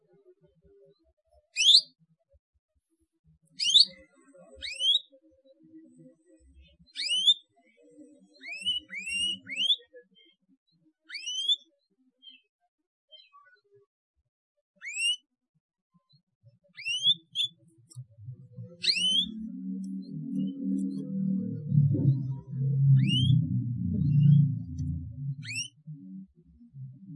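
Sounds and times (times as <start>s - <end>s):
Atlantic canary song: 1.5s - 2.0s, 3.5s - 10.4s, 11.0s - 12.5s, 14.8s - 15.3s, 16.0s - 27.1s.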